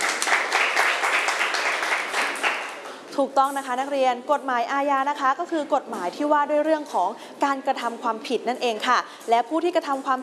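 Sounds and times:
classroom applause for a student: 0:00.0 - 0:03.0
speech: 0:03.2 - 0:10.2.

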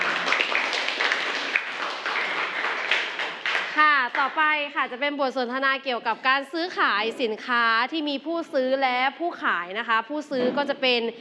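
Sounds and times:
audience clapping: 0:00.0 - 0:04.7
speech: 0:04.2 - 0:11.1.

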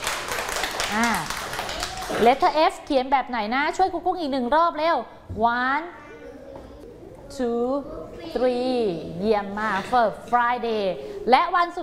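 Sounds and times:
small group hand clapping: 0:00.0 - 0:02.5
speech: 0:00.9 - 0:01.4, 0:02.1 - 0:06.0, 0:07.3 - 0:11.8.

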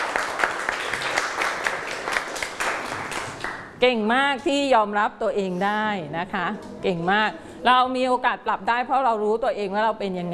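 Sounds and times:
audience applause: 0:00.0 - 0:03.7
speech: 0:03.8 - 0:10.3.

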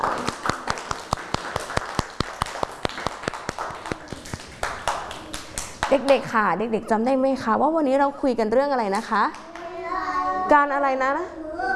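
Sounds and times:
children clapping hands: 0:00.0 - 0:06.3, 0:09.0 - 0:09.9
speech: 0:05.9 - 0:09.4, 0:10.5 - 0:11.4.

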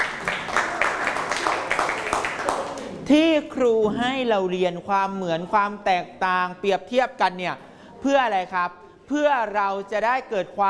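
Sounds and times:
class of students clapping: 0:00.0 - 0:03.0
speech: 0:03.1 - 0:10.6.

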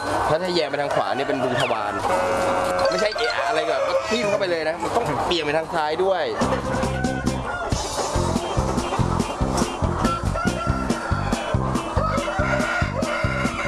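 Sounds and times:
flock of Pradu Hang Dam chickens clucking: 0:00.0 - 0:13.6
speech: 0:00.3 - 0:07.0
Pradu Hang Dam chickens crowing: 0:02.1 - 0:04.5, 0:06.6 - 0:07.9, 0:10.0 - 0:13.6.

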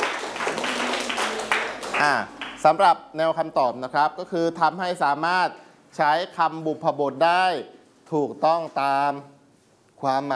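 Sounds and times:
classmates clapping for a student in a lesson: 0:00.0 - 0:02.8
speech: 0:02.0 - 0:09.3, 0:10.0 - 0:10.3.

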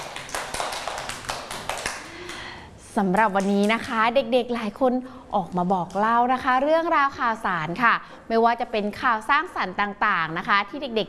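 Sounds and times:
children clapping for a classmate on a kids' news show: 0:00.0 - 0:02.5
speech: 0:03.0 - 0:11.0.

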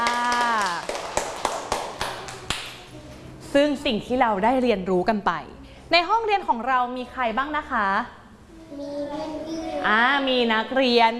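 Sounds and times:
hands clapping: 0:00.0 - 0:02.9
speech: 0:03.6 - 0:11.1.

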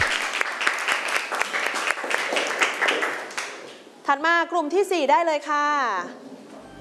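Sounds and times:
students applauding: 0:00.0 - 0:03.8
speech: 0:04.1 - 0:06.3.

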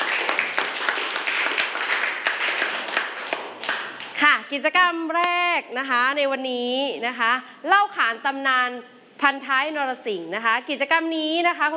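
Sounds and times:
students clapping in classroom: 0:00.0 - 0:04.2
speech: 0:04.5 - 0:11.7.

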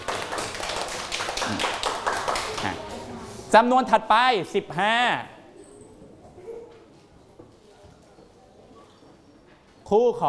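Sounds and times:
class clapping hands: 0:00.0 - 0:02.9
speech: 0:01.5 - 0:01.8, 0:03.5 - 0:05.3, 0:09.9 - 0:10.2.

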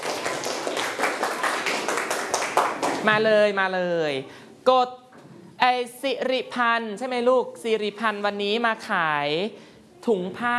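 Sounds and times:
group applause: 0:00.0 - 0:03.1
speech: 0:03.0 - 0:05.0, 0:05.6 - 0:10.5.

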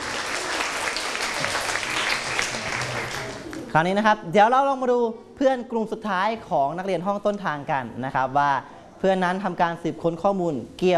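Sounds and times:
classroom group clapping: 0:00.0 - 0:03.7
speech: 0:03.7 - 0:10.9.

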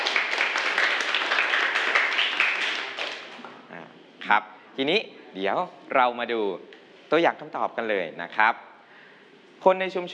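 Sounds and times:
students applauding: 0:00.0 - 0:03.6
speech: 0:04.3 - 0:08.7, 0:09.6 - 0:10.1.

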